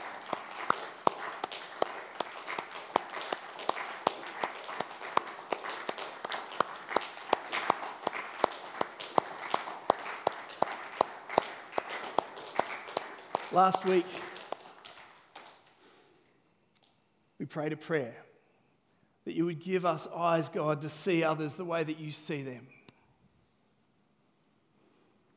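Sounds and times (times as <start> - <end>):
audience clapping: 0.0 - 15.8
speech: 13.6 - 14.3, 17.5 - 18.3, 19.3 - 22.8.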